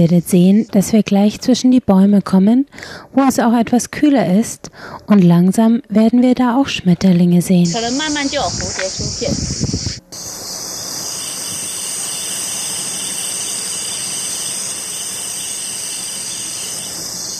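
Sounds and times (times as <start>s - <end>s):
speech: 0.0s - 10.4s
cicadas in a Taiwanese summer forest: 7.6s - 17.3s.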